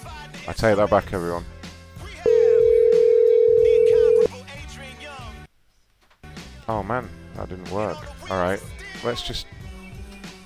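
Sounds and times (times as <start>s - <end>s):
speech: 0.5s - 1.5s, 6.7s - 9.6s
telephone dial tone from a dialing machine: 2.3s - 4.3s.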